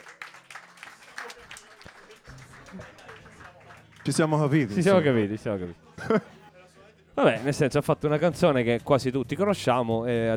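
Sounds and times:
applause: 0.0s - 5.2s
laughter: 0.8s - 8.6s
speech: 4.0s - 6.3s, 7.2s - 10.3s.

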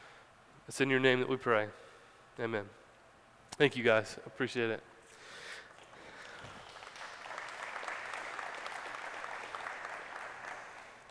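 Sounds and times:
speech: 0.7s - 1.8s, 2.4s - 2.8s, 3.6s - 4.9s
weak applause from audience: 5.7s - 11.1s.

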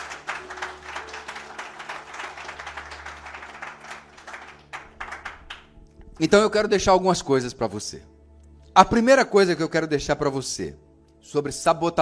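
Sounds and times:
audience applauding: 0.0s - 6.3s
speech: 6.2s - 8.1s, 8.8s - 11.9s.

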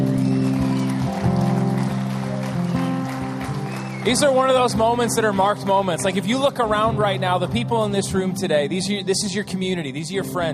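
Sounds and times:
crowd applause: 0.0s - 6.5s
speech: 4.0s - 10.5s.

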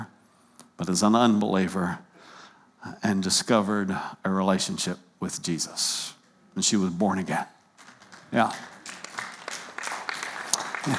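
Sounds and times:
speech: 0.8s - 2.1s, 2.8s - 7.6s, 8.3s - 8.7s
scattered applause from an audience: 7.8s - 10.9s.

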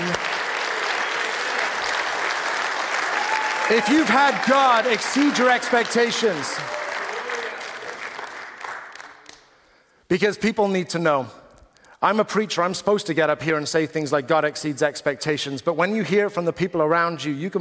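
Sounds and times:
audience applause: 0.0s - 9.4s
speech: 3.7s - 6.8s, 10.1s - 11.4s, 12.0s - 17.5s.

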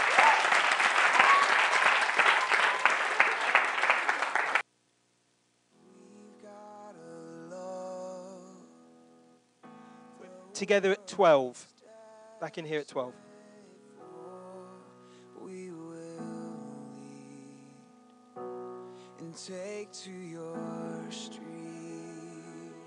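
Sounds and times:
audience applause: 0.0s - 4.6s
speech: 10.6s - 11.7s, 12.4s - 13.2s, 19.5s - 21.4s.

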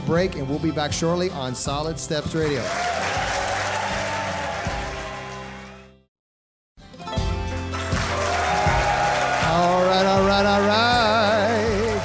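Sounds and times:
speech: 0.1s - 3.4s
excited crowd clapping and cheering at a live event: 2.4s - 6.1s, 7.6s - 12.0s.

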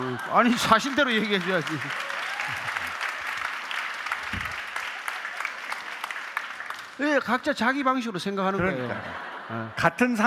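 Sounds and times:
audience applause: 0.0s - 7.8s
speech: 0.2s - 2.1s, 7.0s - 10.2s
laughter: 8.5s - 10.2s.

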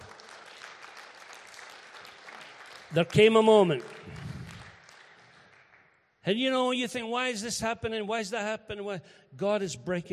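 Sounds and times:
audience applause: 0.0s - 5.9s
speech: 2.9s - 4.0s, 6.3s - 10.1s.

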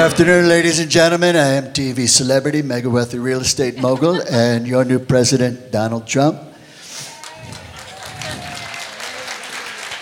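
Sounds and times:
speech: 0.0s - 6.5s
laughter: 3.4s - 4.9s
audience applause: 7.0s - 10.0s.

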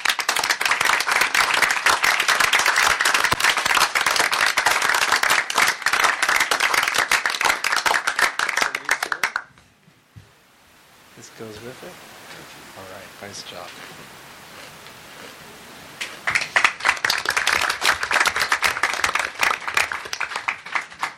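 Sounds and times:
round of applause: 0.0s - 9.5s, 16.0s - 21.1s
speech: 11.6s - 12.1s, 12.8s - 14.2s.

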